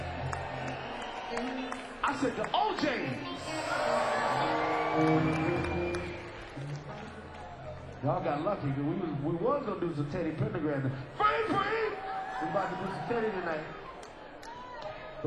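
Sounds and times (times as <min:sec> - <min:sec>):
two people clapping: 0:00.0 - 0:03.5, 0:04.1 - 0:08.0, 0:13.9 - 0:15.0
speech: 0:01.3 - 0:05.8, 0:08.0 - 0:11.7, 0:12.4 - 0:13.8.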